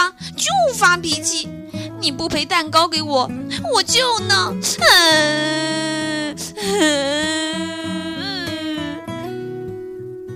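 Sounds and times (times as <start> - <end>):
speech: 0.8 - 8.1
loud crying and wailing: 4.8 - 9.0.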